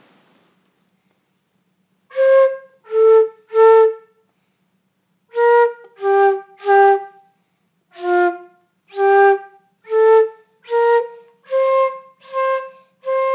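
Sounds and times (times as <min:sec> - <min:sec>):
flute practice: 0:02.1 - 0:04.2, 0:05.3 - 0:07.3, 0:07.9 - 0:13.3.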